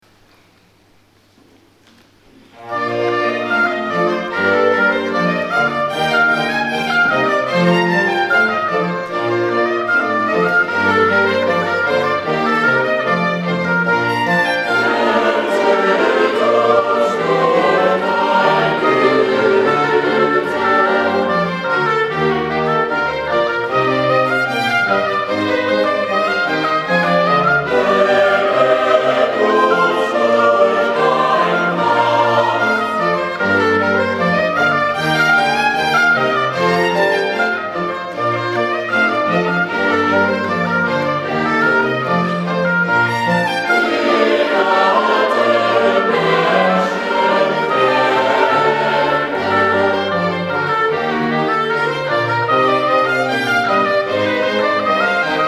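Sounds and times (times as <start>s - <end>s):
chorale: 0.0s - 55.4s.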